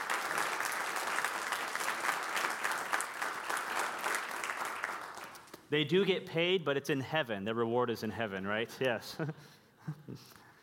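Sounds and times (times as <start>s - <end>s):
audience round of applause: 0.0s - 5.5s
speech: 5.7s - 10.4s.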